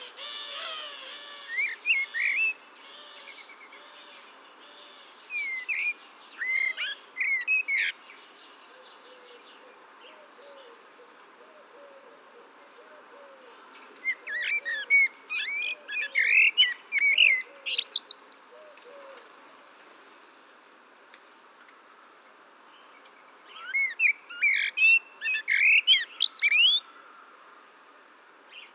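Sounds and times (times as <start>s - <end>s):
Eurasian blackbird singing: 0.0s - 10.8s, 11.6s - 18.6s, 21.9s - 27.0s
steady background hiss: 0.0s - 28.7s.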